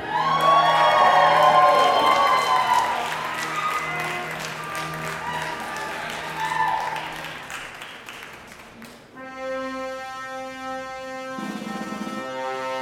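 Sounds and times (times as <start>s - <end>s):
crowd applause and cheering welcoming a national anthem singer: 0.0s - 9.2s.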